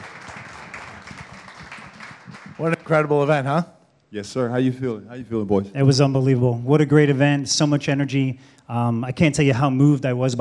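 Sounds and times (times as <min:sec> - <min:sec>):
audience applause: 0:00.0 - 0:03.1
speech: 0:02.6 - 0:10.3.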